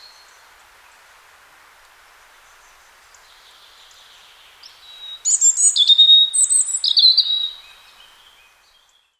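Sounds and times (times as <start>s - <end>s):
robin singing: 2.4s - 9.1s.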